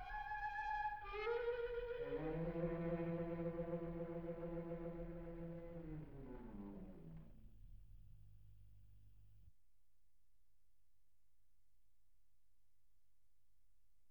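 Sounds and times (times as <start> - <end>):
string quartet in B flat major: 0.0 - 7.6.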